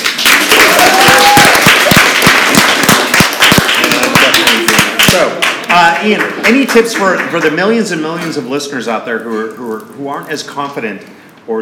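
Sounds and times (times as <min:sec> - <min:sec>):
studio audience applause: 0:00.0 - 0:07.6
speech: 0:06.0 - 0:11.6.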